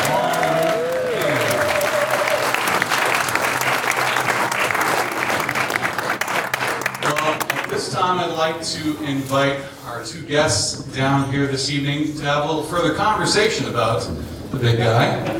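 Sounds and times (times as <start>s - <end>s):
audience applause at an evening event honoring King Kong: 0.0s - 8.0s
speech: 8.1s - 15.3s.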